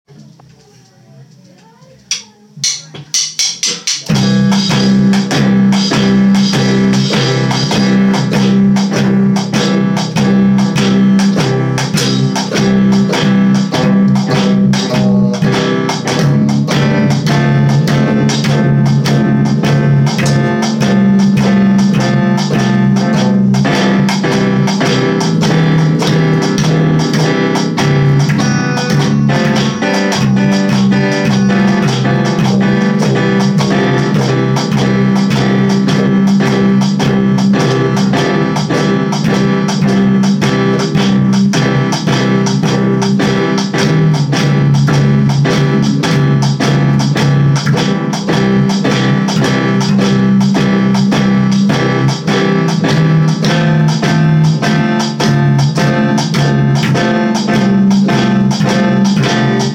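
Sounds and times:
twelve-bar blues band playing: 1.6 - 59.7.

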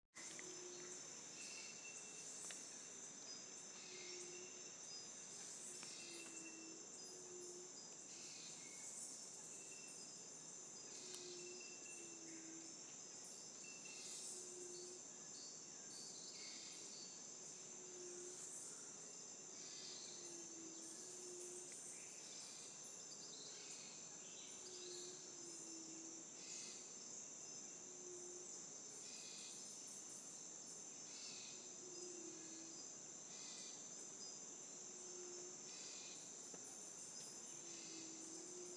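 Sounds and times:
rainforest sound in Guadeloupe: 0.2 - 38.7.

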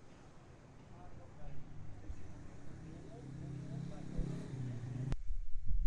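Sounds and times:
road traffic passing beside a café terrace: 0.0 - 5.2
vehicle rushing by along a roadside: 1.7 - 5.2.

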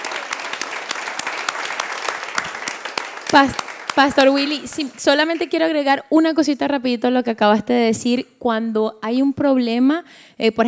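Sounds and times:
audience applause: 0.0 - 5.6
speech: 3.3 - 10.6.

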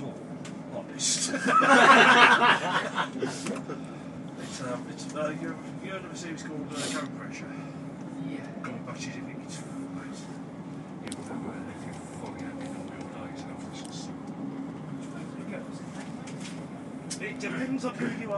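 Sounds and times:
people conversing on a train: 0.0 - 18.3
people laughing on a train: 1.2 - 4.0.

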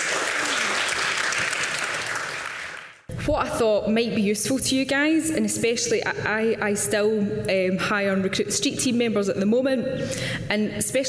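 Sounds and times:
audience cheering: 0.0 - 2.8
speech: 3.3 - 11.0.

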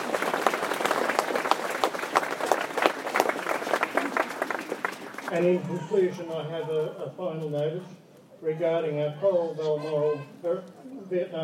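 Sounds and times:
audience applause: 0.0 - 5.6
speech: 5.3 - 11.4.

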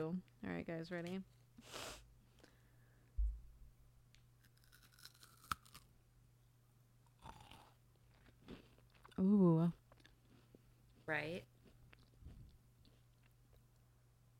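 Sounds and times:
speech: 0.0 - 2.0, 9.2 - 9.8, 11.1 - 11.5
ASMR eating, soft crunching and chewing of food: 4.1 - 6.0, 7.0 - 14.0.

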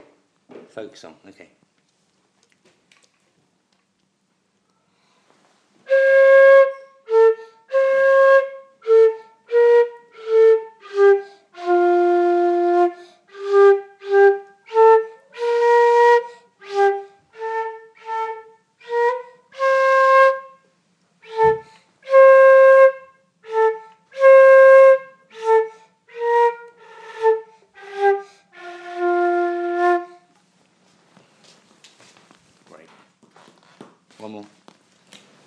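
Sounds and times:
flute practice: 5.8 - 30.3.

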